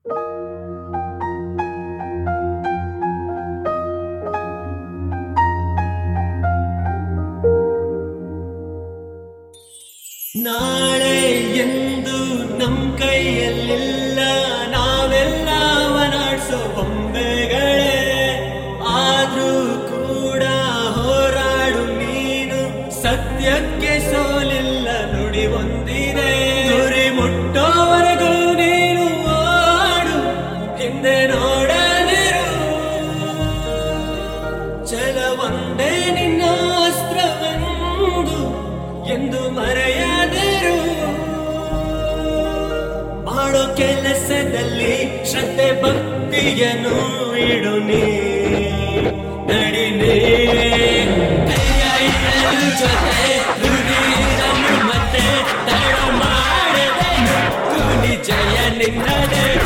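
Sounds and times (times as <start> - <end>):
motivational song: 0.0 - 59.6.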